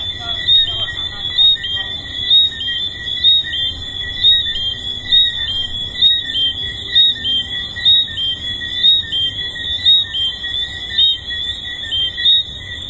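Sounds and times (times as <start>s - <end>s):
tree frog chorus: 0.0s - 12.8s.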